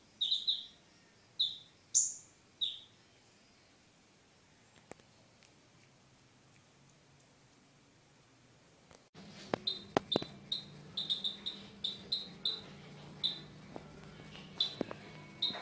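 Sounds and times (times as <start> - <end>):
mountain sunbird singing: 0.0 - 3.8, 9.6 - 13.5, 14.2 - 14.8.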